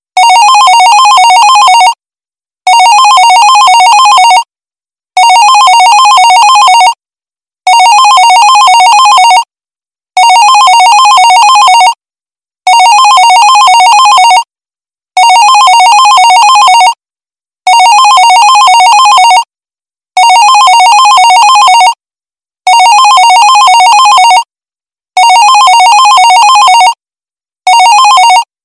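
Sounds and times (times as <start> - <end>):
office phone ringing: 0.2 - 2.0, 2.7 - 4.4, 5.2 - 7.0, 7.7 - 9.4, 10.2 - 12.0, 12.7 - 14.4, 15.2 - 17.0, 17.7 - 19.4, 20.2 - 22.0, 22.7 - 24.4, 25.2 - 27.0, 27.7 - 28.5.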